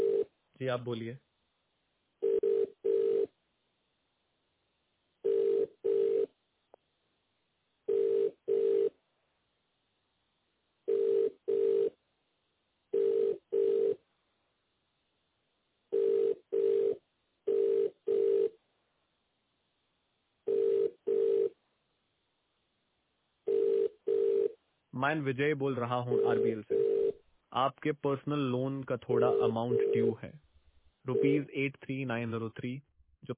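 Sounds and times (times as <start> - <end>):
telephone ringback tone: 0.0 - 0.3, 2.2 - 3.3, 5.2 - 6.3, 7.9 - 9.0, 10.9 - 11.9, 13.0 - 14.0, 15.9 - 18.6, 20.5 - 21.6, 23.5 - 24.6, 26.1 - 27.2, 29.2 - 30.2, 31.1 - 31.5
speech: 0.6 - 1.3, 25.0 - 26.8, 27.6 - 30.4, 31.0 - 33.3.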